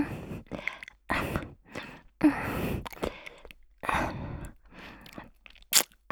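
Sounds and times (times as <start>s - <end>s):
ear licking practice sounds: 0.1s - 3.7s, 5.0s - 6.0s.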